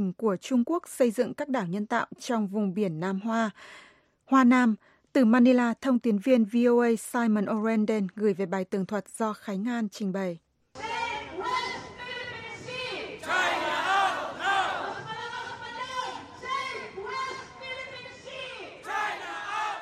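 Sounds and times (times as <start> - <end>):
speech: 0.0 - 11.7
protesters chanting outside consulate: 10.8 - 19.8.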